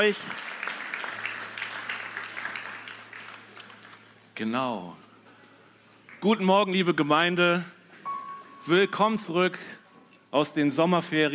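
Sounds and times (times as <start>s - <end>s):
speech: 0.0s - 0.5s, 4.4s - 5.0s, 6.2s - 7.8s, 8.6s - 11.3s
audience applause: 0.0s - 4.3s.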